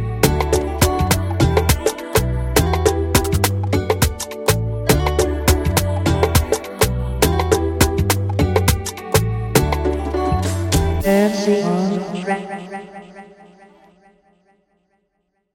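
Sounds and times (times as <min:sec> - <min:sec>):
afrobeat instrumental music: 0:00.0 - 0:12.2.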